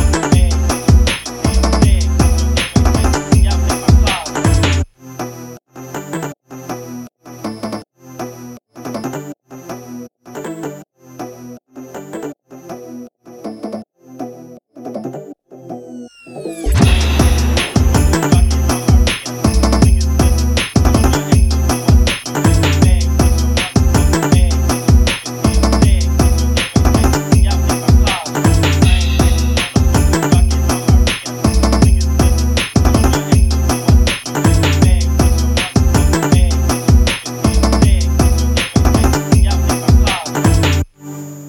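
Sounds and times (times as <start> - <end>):
phonk track with fart sounds: 0.0 - 4.9, 16.6 - 40.9.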